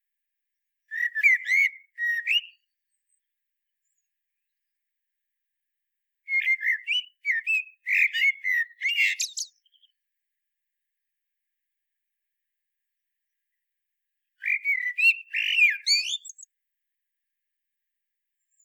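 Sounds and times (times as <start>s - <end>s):
common blackbird singing: 0.9s - 3.2s, 6.3s - 10.0s, 14.4s - 16.5s.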